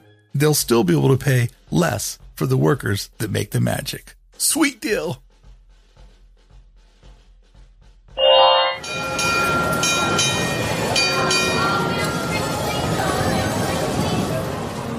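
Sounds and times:
speech: 0.4 - 5.2
bright tonal ring: 8.2 - 12.2
trolley running on rails: 8.2 - 14.9.

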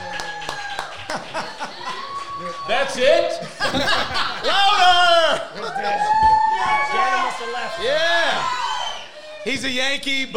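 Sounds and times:
small sparse round of applause: 0.0 - 9.4
laughter: 0.7 - 8.2
speech: 2.4 - 8.5, 9.4 - 10.3.

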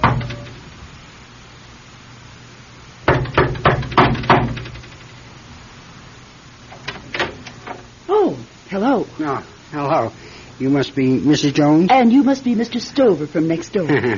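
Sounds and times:
knocking on a door: 0.0 - 0.6, 3.0 - 5.0
speech: 8.7 - 14.1.

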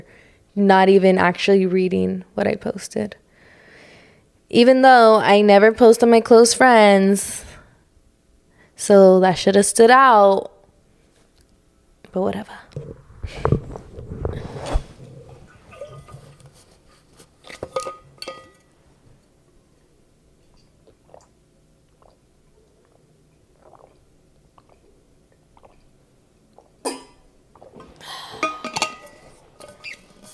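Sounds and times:
speech: 0.0 - 3.2, 4.5 - 7.5, 8.8 - 10.5, 12.1 - 13.6
person swallowing from an insulated water bottle: 12.7 - 16.2, 23.6 - 24.0
slurp: 12.7 - 16.7, 20.8 - 25.0, 25.6 - 25.9
insulated water bottle handled and clinking: 17.5 - 18.6.

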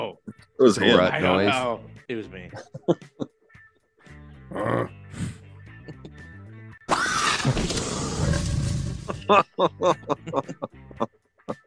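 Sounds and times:
speech: 0.1 - 3.2, 4.6 - 5.0, 9.3 - 11.6
velociraptor grunting and roaring sound effect: 4.5 - 5.4, 6.9 - 9.2
laughter: 9.1 - 11.1.

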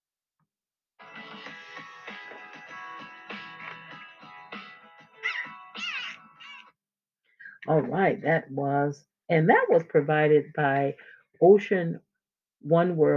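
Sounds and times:
dolphins squealing and whistling: 5.2 - 6.7
speech: 7.6 - 13.1.

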